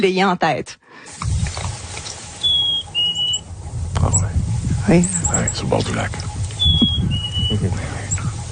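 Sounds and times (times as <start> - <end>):
speech: 0.0 - 1.6, 4.0 - 6.3, 7.0 - 8.1
low steady rumble of noise: 1.2 - 8.5
male black-capped chickadee courtship song by a lake: 2.4 - 3.5, 6.6 - 7.6.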